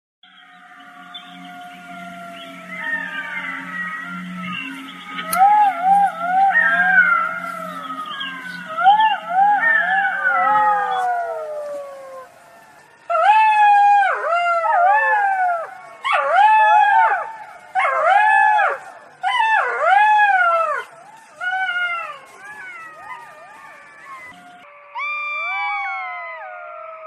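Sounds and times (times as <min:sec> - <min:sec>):
low steady hum: 0:00.2 - 0:24.7
golden jackal howling: 0:00.3 - 0:27.0.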